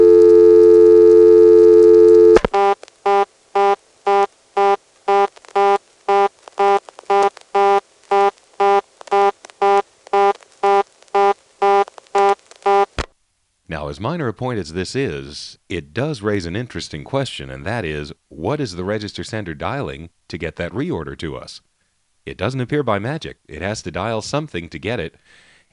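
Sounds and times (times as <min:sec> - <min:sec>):
1977 telephone dial tone: 0:00.0 - 0:12.9
speech: 0:13.9 - 0:25.5.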